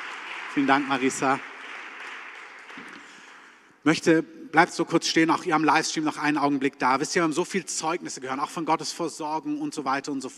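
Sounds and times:
crowd applauding: 0:00.0 - 0:03.7
speech: 0:00.6 - 0:01.5, 0:03.8 - 0:10.3.

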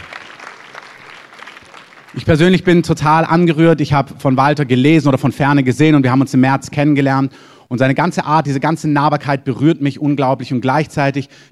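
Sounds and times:
audience clapping: 0:00.0 - 0:03.0
speech: 0:02.1 - 0:11.5.

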